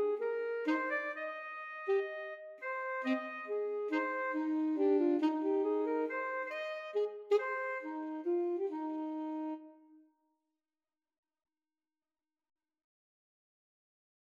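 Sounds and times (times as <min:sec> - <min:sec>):
alto saxophone trio: 0:00.0 - 0:09.8.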